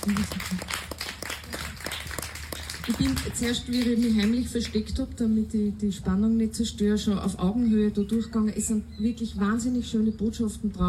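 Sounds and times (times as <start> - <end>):
speech: 0.0 - 0.9, 2.9 - 10.8
audience applause: 0.0 - 4.4.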